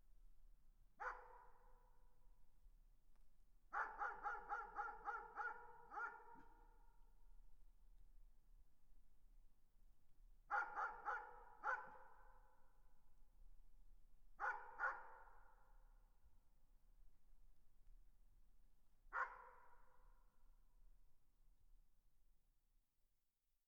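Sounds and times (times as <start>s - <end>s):
dog giving sharp clipped barks: 1.0s - 1.7s, 3.8s - 6.6s, 10.5s - 12.2s, 14.4s - 15.5s, 19.1s - 19.8s.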